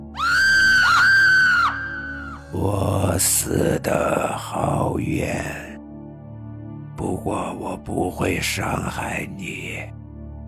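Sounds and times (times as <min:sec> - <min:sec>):
woman screaming in fright: 0:00.0 - 0:02.5
speech: 0:02.5 - 0:05.6, 0:07.0 - 0:10.0.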